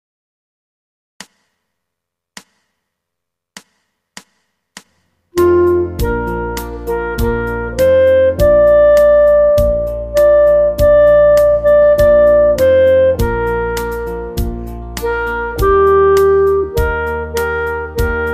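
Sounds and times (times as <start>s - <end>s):
blues song: 5.4s - 18.3s.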